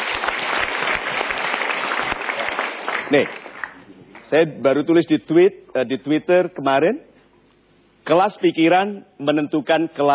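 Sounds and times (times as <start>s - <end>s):
studio audience applause at a motivational talk show: 0.0s - 3.8s
speech: 3.1s - 3.4s, 4.3s - 7.1s, 8.0s - 10.1s.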